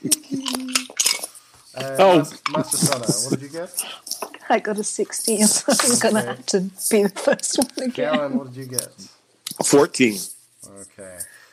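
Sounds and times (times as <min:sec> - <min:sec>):
dice clattering across a hard surface: 0:00.4 - 0:01.3
laughter: 0:01.8 - 0:03.7, 0:05.4 - 0:08.9
speech: 0:01.8 - 0:11.4.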